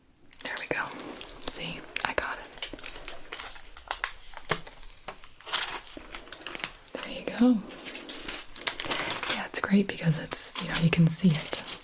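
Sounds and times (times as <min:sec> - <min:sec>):
backing peeled off a tattoo healing film: 0:00.2 - 0:11.8
speech: 0:00.7 - 0:01.0, 0:01.6 - 0:02.6, 0:07.4 - 0:07.8, 0:09.6 - 0:11.7.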